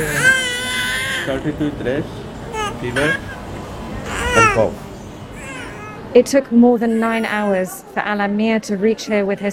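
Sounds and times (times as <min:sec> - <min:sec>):
baby crying in a crowded hospital ward: 0:00.0 - 0:01.3, 0:02.5 - 0:04.8, 0:05.4 - 0:06.2
murmur of voices: 0:00.0 - 0:09.5
speech: 0:01.3 - 0:02.2, 0:02.8 - 0:03.3, 0:04.4 - 0:04.9, 0:06.1 - 0:09.5.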